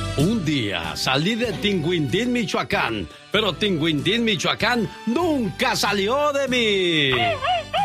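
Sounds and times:
speech: 0.2 - 7.6
rapid-fire Mexican grito shout: 7.1 - 7.7.

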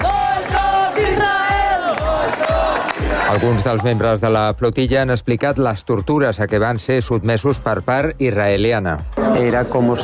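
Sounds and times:
crowd shouting protest chants against Israel: 0.0 - 3.4
speech: 3.4 - 10.0.

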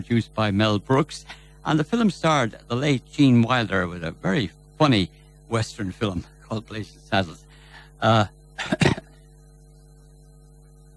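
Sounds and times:
speech: 0.0 - 8.9
coughing: 8.5 - 9.3
voiced throat sound: 8.6 - 9.2.

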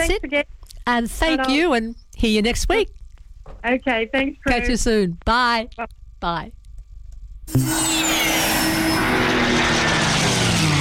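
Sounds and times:
speech: 0.0 - 3.0, 3.6 - 6.6, 7.5 - 8.3
aircraft engine roaring at air show: 7.6 - 10.8.

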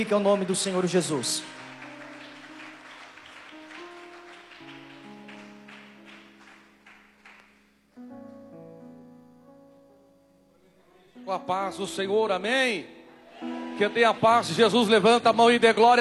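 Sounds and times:
speech: 0.0 - 1.6, 11.3 - 16.0
audience applause: 0.0 - 7.5, 13.4 - 14.4
organ or keyboard chords: 0.0 - 16.0.

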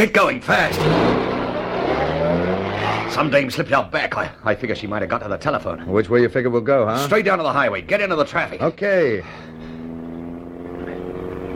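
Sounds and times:
speech: 0.0 - 1.2, 3.1 - 9.7
motorbike engine coming up from behind a car: 0.5 - 3.5, 8.7 - 11.5.

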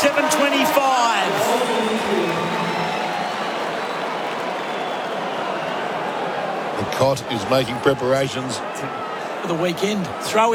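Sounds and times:
stadium crowd cheering: 0.0 - 10.5
speech: 7.0 - 10.5.

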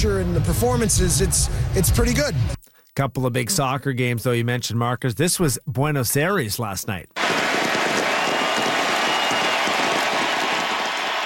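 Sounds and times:
speech: 0.2 - 7.4
stadium crowd applauding: 7.2 - 11.2.

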